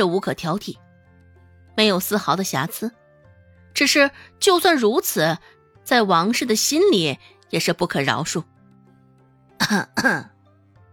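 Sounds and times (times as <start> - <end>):
speech: 0.0 - 0.8, 1.8 - 3.0, 3.7 - 8.5, 9.6 - 10.3
person clearing throat: 9.6 - 10.4.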